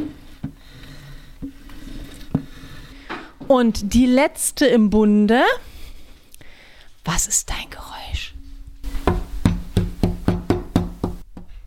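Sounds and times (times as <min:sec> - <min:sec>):
speech: 0:03.5 - 0:05.7, 0:07.1 - 0:07.9
sharp solid knocking on a door: 0:09.0 - 0:11.5.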